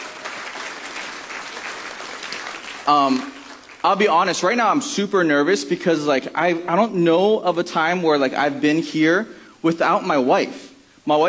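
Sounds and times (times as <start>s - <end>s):
audience applause: 0.0s - 4.0s
speech: 2.9s - 11.2s.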